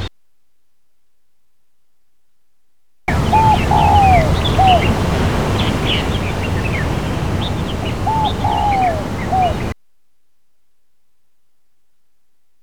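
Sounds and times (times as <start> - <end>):
birds twittering: 3.1 - 9.7
dove cooing: 3.1 - 9.7
low hum: 3.1 - 9.7.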